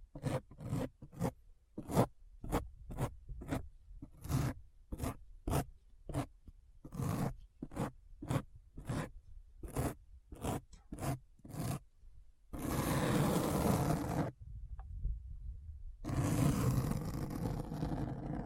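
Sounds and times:
rasping scratching strokes: 0.1s - 11.8s, 12.6s - 14.3s, 16.0s - 18.4s
long continuous rough scrapes: 12.6s - 14.3s, 16.1s - 18.4s.

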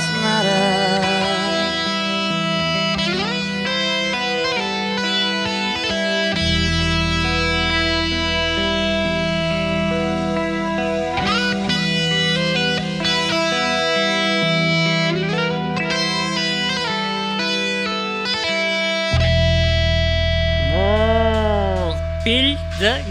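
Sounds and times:
person singing with wide vibrato: 0.0s - 2.8s, 20.6s - 23.0s
distorted electric guitar chords: 0.0s - 23.0s
rock song duet: 0.0s - 23.0s.

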